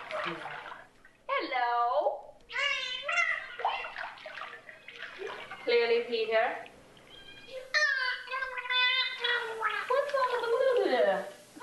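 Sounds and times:
speech: 0.3 - 0.6, 6.1 - 6.7
dolphin making buzzy warbling sounds mimicking human speech: 2.5 - 6.0, 6.9 - 11.0.

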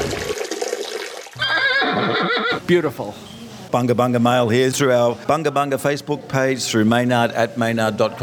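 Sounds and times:
liquid trickling into a metal cup: 0.1 - 1.4
speech: 2.7 - 8.2.

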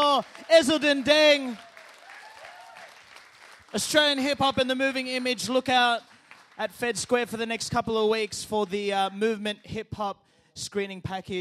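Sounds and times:
audience clapping: 0.0 - 9.1
speech: 0.2 - 1.7, 3.7 - 11.3
whoops: 1.6 - 3.0.

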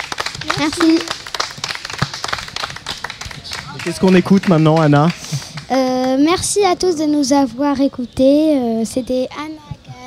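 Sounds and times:
audience clapping: 0.0 - 6.3
speech: 0.4 - 1.2, 3.9 - 9.6.

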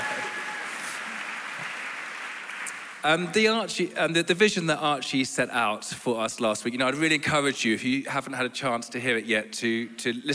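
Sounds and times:
audience applause: 0.0 - 3.2
speech: 3.0 - 10.3.

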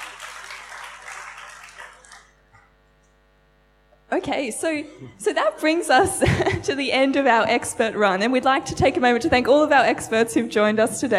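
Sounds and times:
audience applause: 0.0 - 2.4
speech: 4.1 - 11.1
laughter: 4.8 - 7.3.

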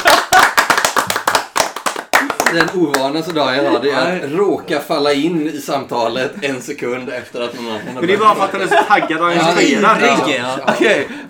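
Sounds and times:
applause, hands clapping: 0.0 - 4.4
speech: 2.5 - 11.2
laughter: 6.2 - 11.2.

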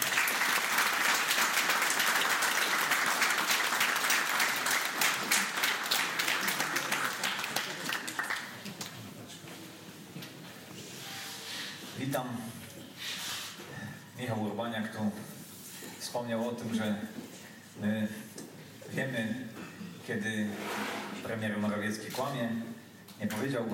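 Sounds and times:
audience applause: 0.0 - 9.0
speech: 12.1 - 12.6, 14.2 - 15.3, 16.1 - 17.2, 17.8 - 18.2, 19.0 - 19.4, 20.1 - 23.7.

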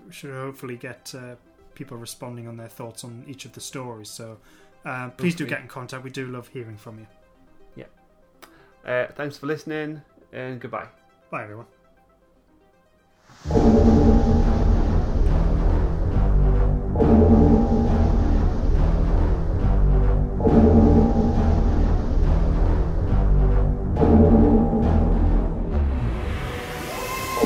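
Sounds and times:
speech: 0.1 - 7.2, 7.8 - 8.0, 8.8 - 11.8
deep ominous alarm bell tolling: 13.5 - 25.8, 26.6 - 27.4.

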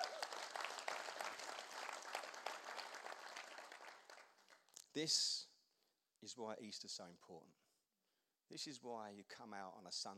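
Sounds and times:
audience applause: 0.0 - 4.6
speech: 5.0 - 5.5, 6.2 - 7.6, 8.5 - 10.1.

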